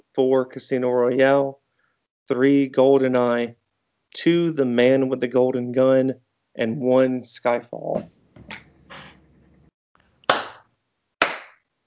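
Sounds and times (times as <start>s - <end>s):
speech: 0.2s - 1.6s, 2.3s - 8.2s
slow clap: 10.2s - 11.6s.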